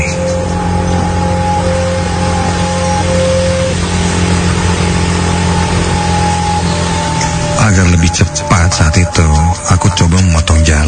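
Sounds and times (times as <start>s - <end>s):
motorcycle engine accelerating: 0.1s - 8.6s
speech: 8.2s - 10.8s.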